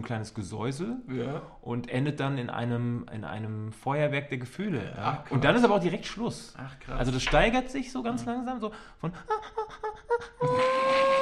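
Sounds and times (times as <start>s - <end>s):
speech: 0.0s - 11.0s
voice imitating a long television test tone: 9.2s - 11.2s.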